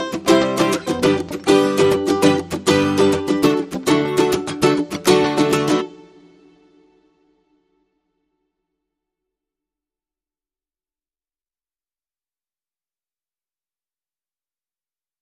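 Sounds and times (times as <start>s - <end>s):
ukulele: 0.0s - 7.4s
guitar: 0.0s - 7.9s.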